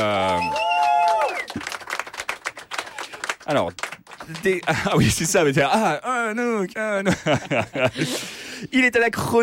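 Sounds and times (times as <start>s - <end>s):
audience applause: 0.0s - 5.3s
speech: 3.5s - 9.4s.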